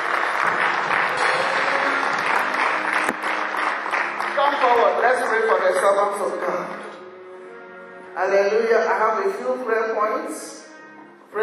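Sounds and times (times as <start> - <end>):
audience clapping: 0.0 - 7.0
speech: 4.7 - 6.9, 8.2 - 10.6.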